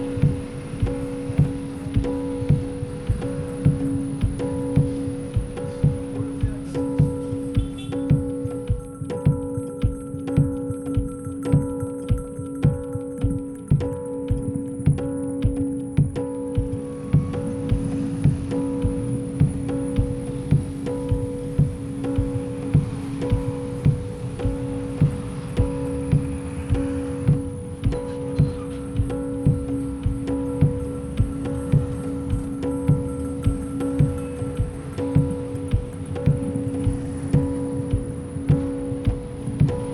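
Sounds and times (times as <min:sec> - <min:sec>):
field recording mix: 0:00.0 - 0:39.9.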